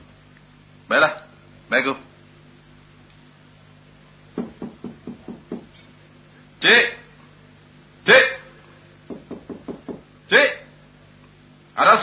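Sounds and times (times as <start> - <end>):
speech: 0.9 - 2.1, 6.6 - 7.0
knocking on a door: 4.4 - 5.7, 9.1 - 10.1.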